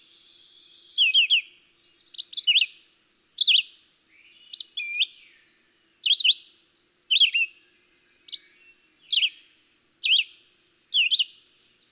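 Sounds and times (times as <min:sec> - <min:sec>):
Red-eyed Vireo singing whistled phrases: 0:00.0 - 0:01.5, 0:03.4 - 0:06.5, 0:08.3 - 0:10.3, 0:10.9 - 0:11.9.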